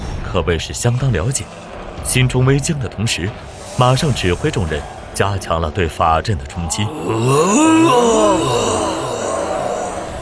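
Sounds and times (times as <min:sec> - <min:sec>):
speech: 0:00.4 - 0:09.0
soldiers growling low: 0:06.5 - 0:10.2.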